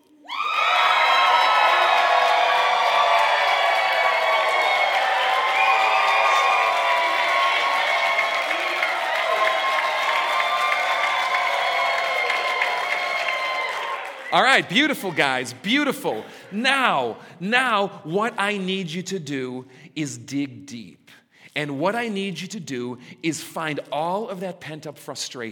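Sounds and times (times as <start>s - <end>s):
studio audience cheering and applauding on a countdown: 0.2s - 17.1s
speech: 14.4s - 25.5s.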